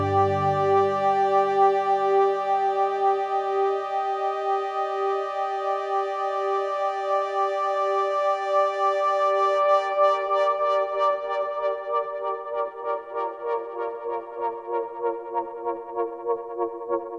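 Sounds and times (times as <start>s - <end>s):
Kawai K3 synthesizer being edited live: 0.0s - 17.1s.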